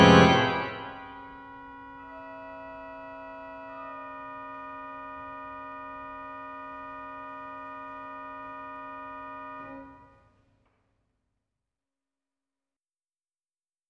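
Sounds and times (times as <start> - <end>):
organ: 0.0 - 10.0.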